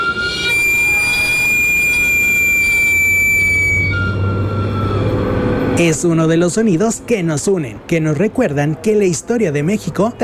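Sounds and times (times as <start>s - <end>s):
sweet potato vendor's cart steam whistle: 0.0s - 5.8s
speech: 5.8s - 10.2s.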